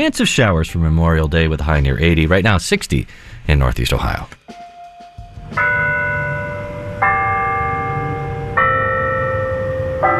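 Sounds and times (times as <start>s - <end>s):
speech: 0.0s - 4.6s
bells chiming the hour: 4.6s - 10.1s.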